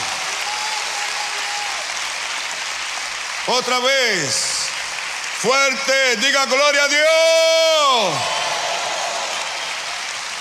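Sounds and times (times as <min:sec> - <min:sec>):
audience applause: 0:00.0 - 0:10.3
speech: 0:03.5 - 0:04.5, 0:05.4 - 0:08.4.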